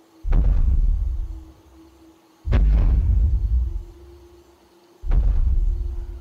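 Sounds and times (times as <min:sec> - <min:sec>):
constant heavy blows striking a tree: 0:00.2 - 0:01.3, 0:02.4 - 0:04.1, 0:05.0 - 0:05.9.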